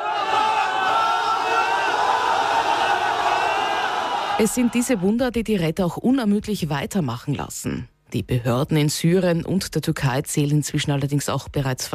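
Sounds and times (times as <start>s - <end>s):
crowd cheering at earthquake rescue: 0.0s - 5.2s
speech: 4.4s - 11.9s.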